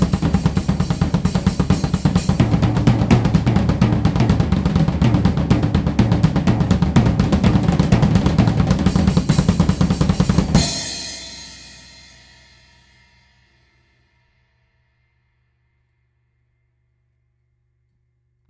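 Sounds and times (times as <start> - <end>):
drums accelerating: 0.0 - 13.0.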